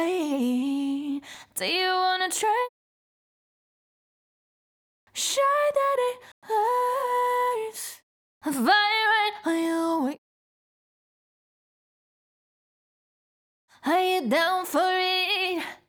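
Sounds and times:
pop vocals a cappella: 0:00.0 - 0:02.8, 0:05.1 - 0:10.2, 0:13.7 - 0:15.8.

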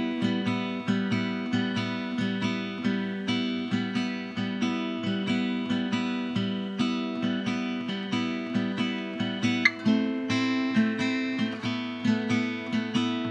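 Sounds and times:
backing guitar in E minor: 0:00.0 - 0:13.2.

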